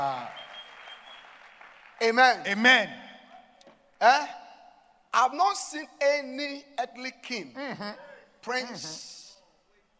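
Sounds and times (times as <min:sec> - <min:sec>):
audience clapping hands for God: 0:00.0 - 0:02.5
speech: 0:02.0 - 0:03.0, 0:04.0 - 0:04.4, 0:05.2 - 0:09.2.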